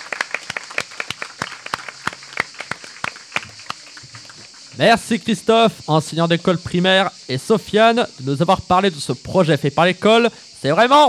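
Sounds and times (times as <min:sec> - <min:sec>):
audience applauding: 0:00.0 - 0:04.8
speech: 0:04.8 - 0:11.0.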